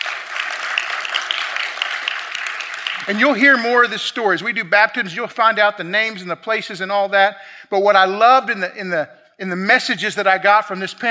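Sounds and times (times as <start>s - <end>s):
crowd applause: 0.0s - 3.5s
speech: 3.1s - 11.0s.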